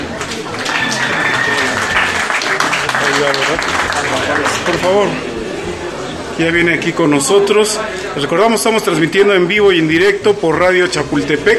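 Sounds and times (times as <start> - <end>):
audience applause: 0.0 - 5.2
murmur of voices: 0.0 - 11.5
speech: 4.7 - 5.3, 6.4 - 11.5.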